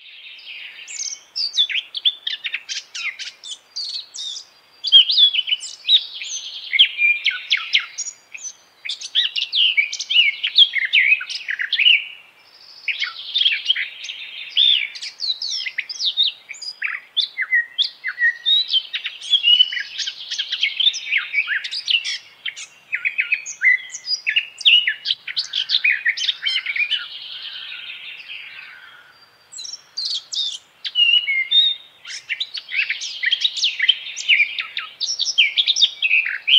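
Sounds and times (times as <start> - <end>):
Eurasian blackcap singing: 0.0 - 36.5.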